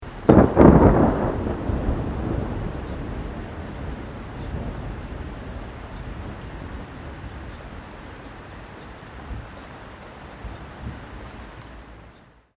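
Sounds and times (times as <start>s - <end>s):
light rain: 0.0s - 12.5s
close thunder: 0.2s - 7.8s
birds: 2.4s - 12.5s.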